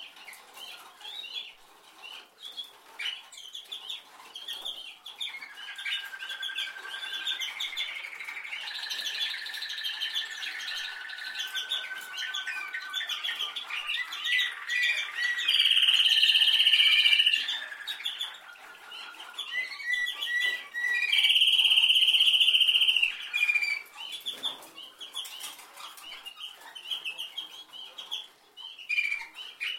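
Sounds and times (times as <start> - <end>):
canary singing: 0.0 - 29.7
small birds chirping: 0.0 - 29.7.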